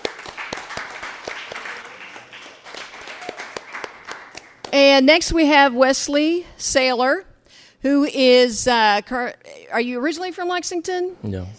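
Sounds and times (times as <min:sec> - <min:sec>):
audience applause: 0:00.0 - 0:04.7
speech: 0:04.7 - 0:11.5.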